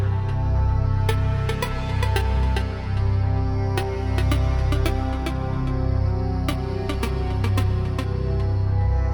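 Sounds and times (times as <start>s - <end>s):
drum and bass music: 0.0s - 9.0s.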